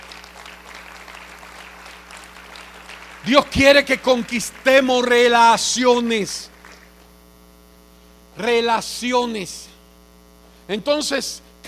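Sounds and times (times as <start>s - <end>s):
audience applauding: 0.0s - 5.6s, 6.4s - 7.1s
speech: 3.2s - 6.5s, 8.4s - 9.7s, 10.7s - 11.6s.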